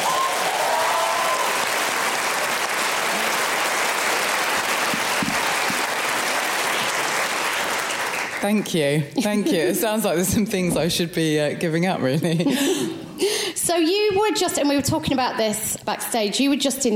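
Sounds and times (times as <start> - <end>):
audience applause: 0.0 - 8.7
speech: 8.4 - 16.9.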